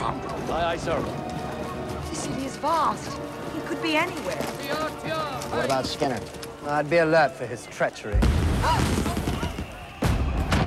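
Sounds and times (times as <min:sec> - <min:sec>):
speech: 0:00.5 - 0:01.4, 0:02.2 - 0:09.0
fireworks bursting at a carnival: 0:08.1 - 0:10.6.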